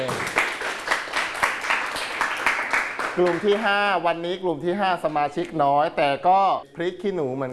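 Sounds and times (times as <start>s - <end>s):
classroom audience clapping for a student group: 0.0s - 3.9s
speech: 3.2s - 7.5s.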